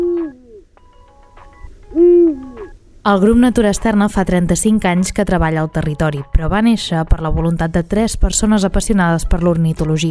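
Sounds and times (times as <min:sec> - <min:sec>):
Eurasian eagle-owl hooting: 0:00.0 - 0:00.7, 0:01.9 - 0:02.8
faint tonal noises: 0:00.0 - 0:04.0
speech: 0:03.1 - 0:10.1.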